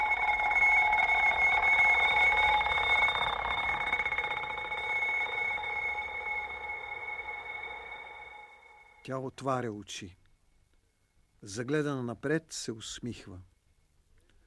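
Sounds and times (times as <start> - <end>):
bell ringing loudly: 0.0 - 9.0
speech: 9.0 - 10.2, 11.4 - 13.5.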